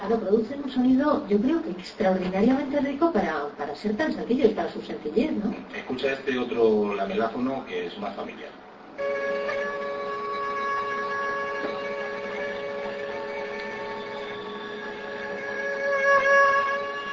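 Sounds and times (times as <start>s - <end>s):
speech: 0.1s - 9.2s
female Asian tiger mosquito in flight: 9.0s - 17.1s.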